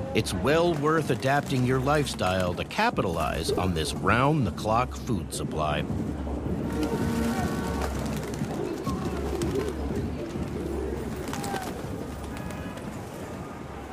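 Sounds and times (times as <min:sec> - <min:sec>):
speech: 0:00.1 - 0:06.2
pigeons cooing: 0:06.7 - 0:13.0.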